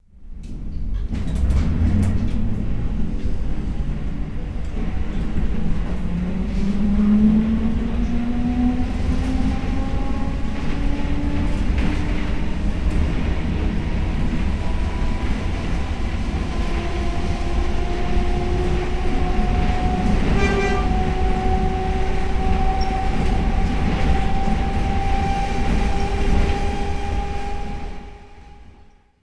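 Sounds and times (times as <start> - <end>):
electric bus driving away: 0.2 - 29.0.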